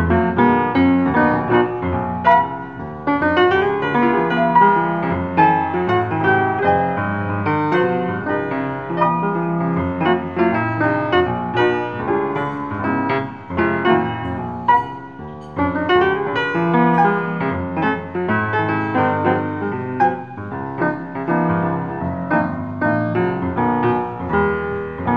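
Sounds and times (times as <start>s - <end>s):
pianist playing live music: 0.0s - 25.1s.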